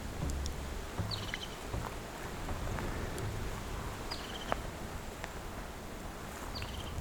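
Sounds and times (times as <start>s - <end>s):
airy rustle of a mixed fir forest: 0.0s - 6.9s
high bird chirps: 1.0s - 1.8s.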